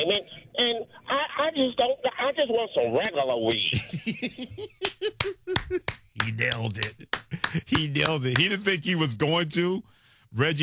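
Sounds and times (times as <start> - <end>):
speech: 0.0 - 10.6
applause: 5.6 - 8.5.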